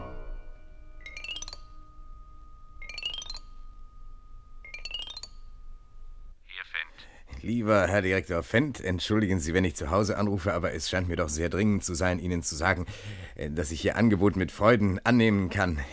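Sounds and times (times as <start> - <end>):
glasses clinking: 1.0 - 5.9
glasses being refilled: 2.8 - 3.7, 4.6 - 5.5
speech: 7.5 - 15.9.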